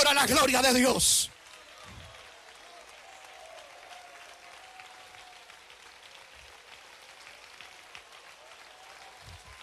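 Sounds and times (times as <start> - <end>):
audience applause: 0.0 - 9.6
speech: 0.2 - 1.4.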